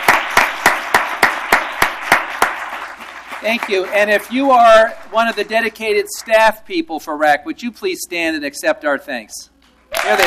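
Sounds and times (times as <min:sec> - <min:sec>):
audience applause: 0:00.0 - 0:05.8, 0:09.9 - 0:10.2
speech: 0:03.4 - 0:10.2.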